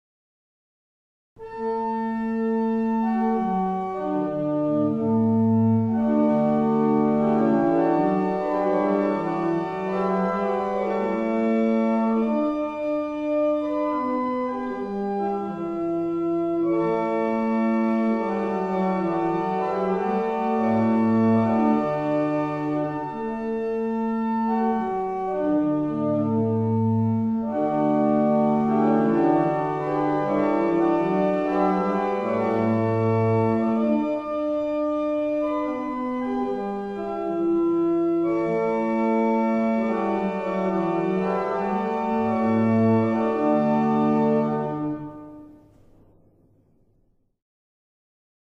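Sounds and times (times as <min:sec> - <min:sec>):
barrel organ playing a double chant: 0:01.4 - 0:45.6.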